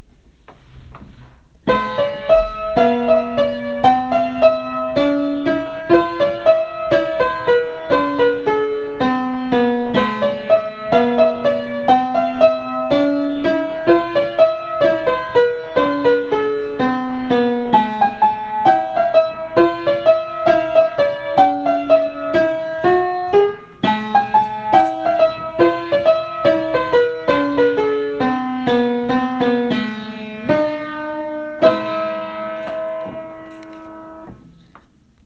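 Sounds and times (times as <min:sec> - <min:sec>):
piano: 0:00.0 - 0:35.2.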